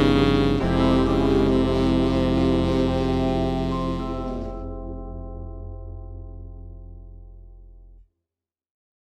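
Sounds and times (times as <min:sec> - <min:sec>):
tenor saxophone: 0:00.0 - 0:05.6.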